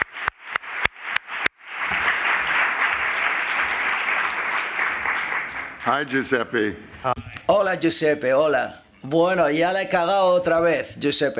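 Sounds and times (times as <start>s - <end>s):
audience applause at a press conference: 0.0s - 6.4s
speech: 5.8s - 11.3s.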